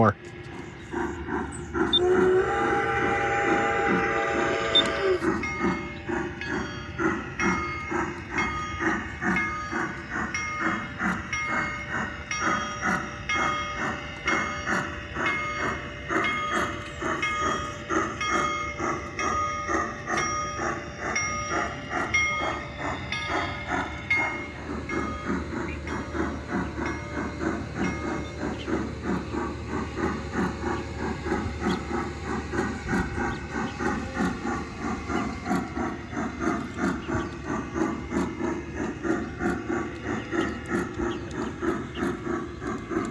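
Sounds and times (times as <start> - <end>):
train rumbling on rails: 0.0 - 43.0
wheels clacking over track joints: 0.0 - 43.0.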